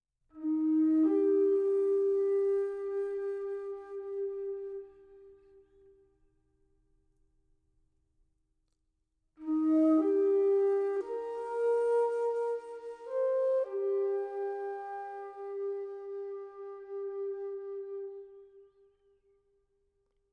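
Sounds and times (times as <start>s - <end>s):
meditative music: 0.3s - 6.9s, 9.4s - 19.4s.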